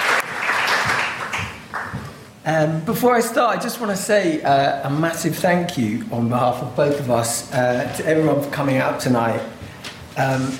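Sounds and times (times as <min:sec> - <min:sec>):
audience applause welcoming speakers and panelists: 0:00.0 - 0:02.0
speech: 0:02.4 - 0:09.6, 0:10.2 - 0:10.5.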